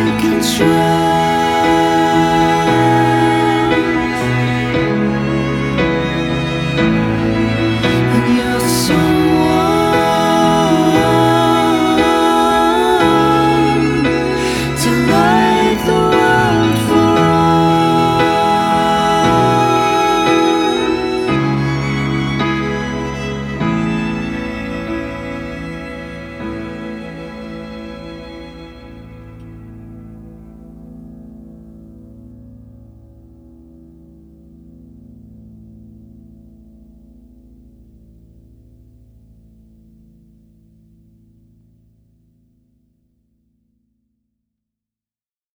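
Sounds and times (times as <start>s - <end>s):
acoustic music: 0.0s - 33.2s.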